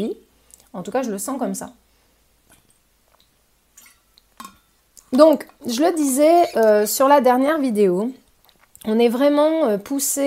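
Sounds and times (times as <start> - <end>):
speech: 0.0 - 1.8, 5.1 - 8.2, 8.8 - 10.2
person sipping and swallowing water: 8.3 - 8.8.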